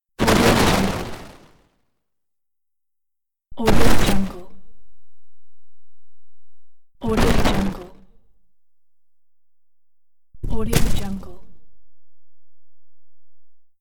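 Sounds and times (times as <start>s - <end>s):
rock smashing in a game: 3.6s - 12.4s.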